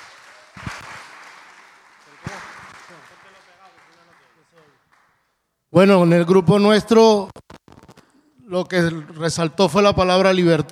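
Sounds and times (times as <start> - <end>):
applause: 0.0 - 5.3
speech: 5.8 - 7.4, 8.5 - 10.7.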